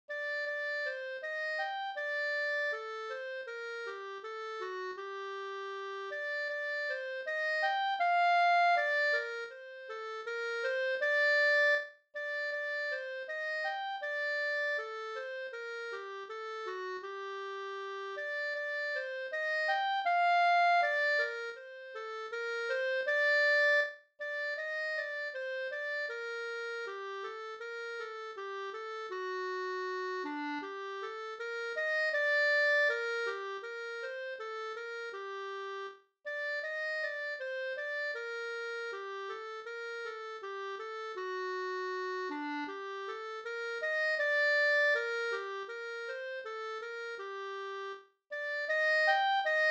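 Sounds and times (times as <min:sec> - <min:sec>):
slow andante melody: 0:00.1 - 0:49.6.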